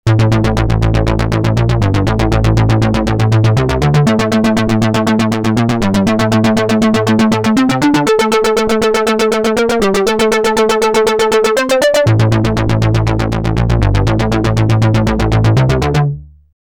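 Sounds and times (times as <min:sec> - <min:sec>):
synth: 0:00.1 - 0:16.0.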